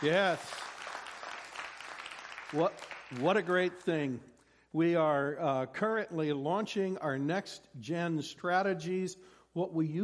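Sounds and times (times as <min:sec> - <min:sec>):
speech: 0:00.0 - 0:00.6, 0:02.5 - 0:10.0
audience applause: 0:00.0 - 0:03.8.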